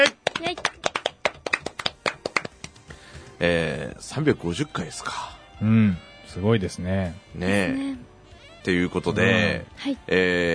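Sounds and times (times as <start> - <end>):
small group clapping: 0.0 - 3.0
speech: 3.4 - 10.5.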